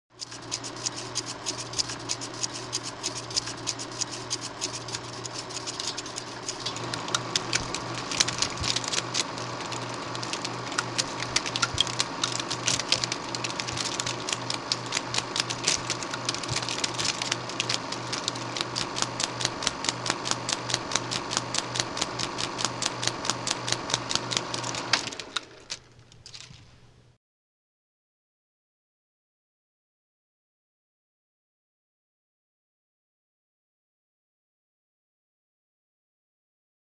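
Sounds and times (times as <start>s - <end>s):
projector switching off: 0.2s - 26.6s.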